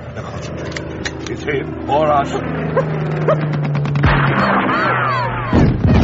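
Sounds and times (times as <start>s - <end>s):
low engine drone: 0.0s - 6.0s
speech: 0.2s - 5.7s
noisy rush: 0.9s - 6.0s
rifle shots: 3.8s - 6.0s.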